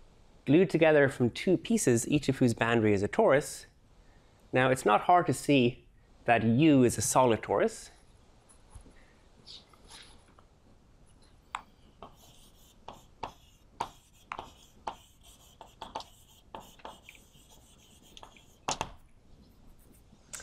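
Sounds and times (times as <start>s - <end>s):
speech: 0.5s - 3.7s, 4.5s - 8.0s
pen or chalk scratching as a lecturer draws a picture: 12.0s - 20.1s.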